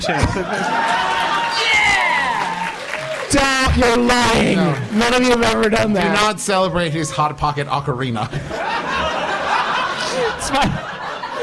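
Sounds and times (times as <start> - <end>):
speech: 0.0 - 1.0, 3.3 - 8.8, 10.5 - 10.8
laughter: 0.0 - 1.7, 8.2 - 11.4
audience applause: 0.4 - 5.3.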